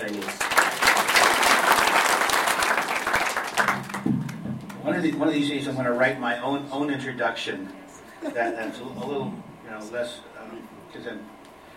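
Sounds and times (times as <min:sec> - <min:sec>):
audience applause welcoming a guest speaker: 0:00.0 - 0:05.2
speech: 0:05.0 - 0:11.4
laughter: 0:08.0 - 0:09.3.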